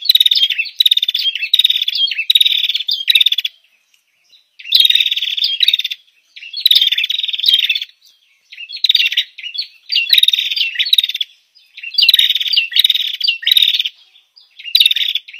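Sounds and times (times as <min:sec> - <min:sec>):
female prenjak bird lure call: 0:00.0 - 0:15.3.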